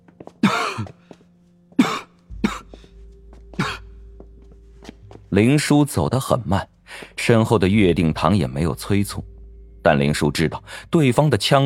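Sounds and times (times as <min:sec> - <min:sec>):
person coughing in a dark empty stone stairway passage: 0:00.4 - 0:01.0, 0:01.8 - 0:02.9, 0:03.5 - 0:04.0
low steady hum: 0:01.3 - 0:11.6
speech: 0:05.3 - 0:11.6.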